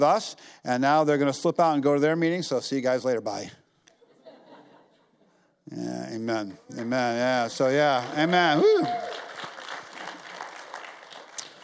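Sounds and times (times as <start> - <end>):
speech: 0.0 - 3.6, 5.7 - 9.1
laughter: 4.0 - 5.4
church congregation applauding the youth group: 6.7 - 11.6.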